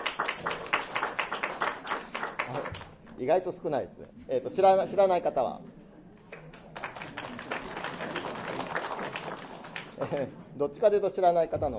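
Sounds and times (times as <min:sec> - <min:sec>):
light scattered clapping from a modest group: 0:00.0 - 0:03.2, 0:06.3 - 0:10.1
speech: 0:03.2 - 0:05.8, 0:10.1 - 0:11.7.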